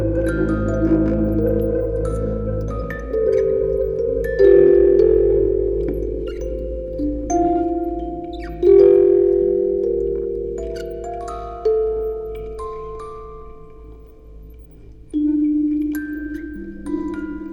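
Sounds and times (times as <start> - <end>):
field recording ambience: 0.0 - 17.5
quartet of music boxes playing: 0.0 - 17.5.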